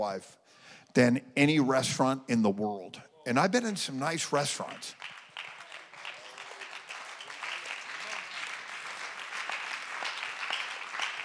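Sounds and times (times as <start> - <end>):
speech: 0.0 - 5.1
audience clapping: 4.3 - 11.2.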